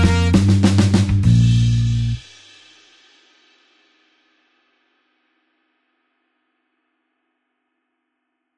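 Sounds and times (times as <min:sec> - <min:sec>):
slow blues horns in B flat: 0:00.0 - 0:02.2.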